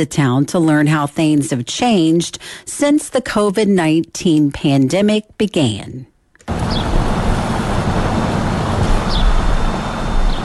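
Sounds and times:
speech: 0.0 - 6.1
steady mechanical hum from construction work: 6.4 - 10.4
birds chirping: 6.6 - 7.0, 9.0 - 9.5, 10.2 - 10.4.

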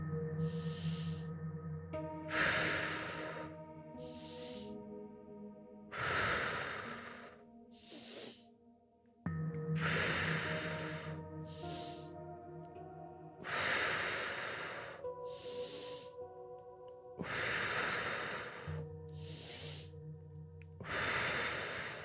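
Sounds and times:
soft sustained musical tone: 0.0 - 22.0
deep inhales and exhales during a guided breathing exercise: 0.4 - 1.3, 2.0 - 4.9, 5.9 - 8.6, 9.8 - 12.6, 13.4 - 16.2, 17.2 - 20.0, 20.8 - 22.0.

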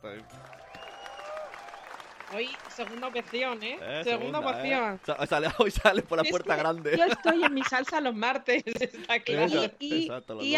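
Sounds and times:
applause: 0.0 - 7.5
speech: 2.3 - 10.5
laughter: 4.1 - 10.0.

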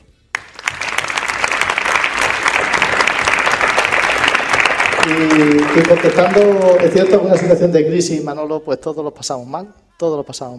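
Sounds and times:
audience applause: 0.3 - 7.7
speech: 5.1 - 10.5.

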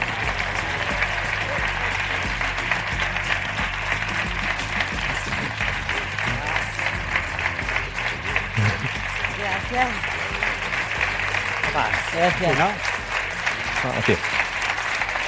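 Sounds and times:
audience applause: 0.0 - 15.2
laughter: 0.0 - 15.2
speech: 12.2 - 12.9, 13.8 - 14.4.

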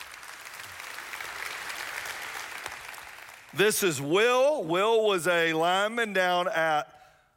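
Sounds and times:
audience applause welcoming a guest: 0.0 - 3.6
speech: 3.5 - 7.0.

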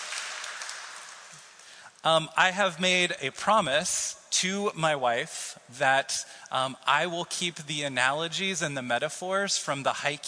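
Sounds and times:
applause: 0.0 - 1.8
speech: 2.0 - 10.2.

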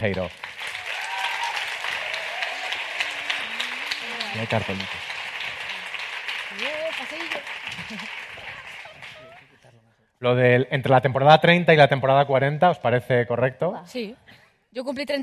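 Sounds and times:
speech: 0.0 - 0.6, 4.3 - 5.1, 6.5 - 8.5, 10.2 - 15.2
audience applause welcoming guests onstage: 0.0 - 9.5
faint cheers: 0.7 - 5.1.

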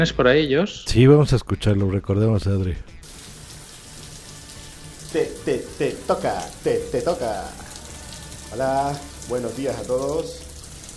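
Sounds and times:
speech: 0.0 - 3.0, 5.1 - 7.6, 8.5 - 10.4
shower water running: 3.0 - 10.9.

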